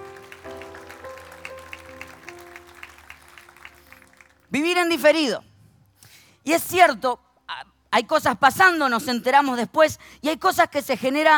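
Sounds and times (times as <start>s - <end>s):
sustained keyboard chords: 0.0s - 4.2s
audience clapping: 0.0s - 4.7s
speech: 4.5s - 5.5s, 6.4s - 7.2s, 7.9s - 11.3s.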